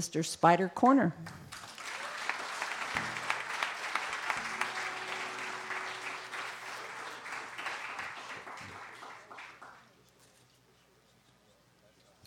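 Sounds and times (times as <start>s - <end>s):
speech: 0.0s - 1.4s
audience clapping to welcome a folk and country blues musician in White Springs, Florida: 1.2s - 10.1s.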